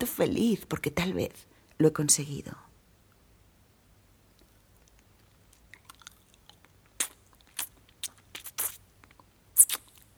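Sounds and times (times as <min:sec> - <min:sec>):
speech: 0:00.0 - 0:02.7
person sucking on a pencil tip: 0:07.0 - 0:08.9, 0:09.6 - 0:10.1.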